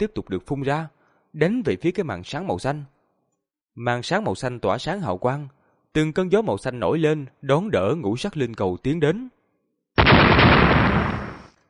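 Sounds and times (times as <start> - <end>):
speech: 0.0 - 3.0, 3.8 - 9.4
loud explosions: 10.0 - 11.6.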